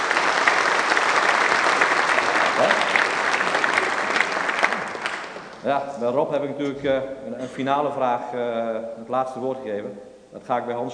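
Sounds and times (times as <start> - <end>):
audience applause: 0.0 - 5.6
speech: 5.7 - 10.9.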